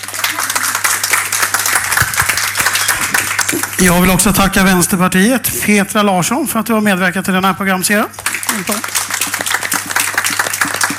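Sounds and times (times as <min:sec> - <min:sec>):
audience applause: 0:00.0 - 0:05.0, 0:08.2 - 0:10.9
speech: 0:03.8 - 0:09.0.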